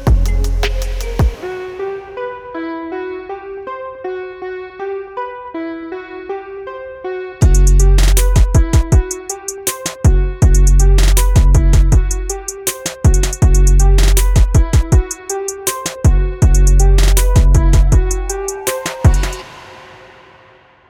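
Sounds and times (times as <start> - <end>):
trap beats: 0.0 - 2.2, 7.4 - 20.5.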